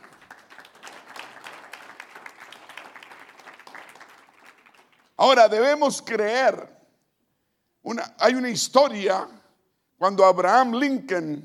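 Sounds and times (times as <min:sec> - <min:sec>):
audience applauding: 0:00.0 - 0:05.2
speech: 0:05.2 - 0:06.8, 0:07.9 - 0:09.4, 0:10.0 - 0:11.4.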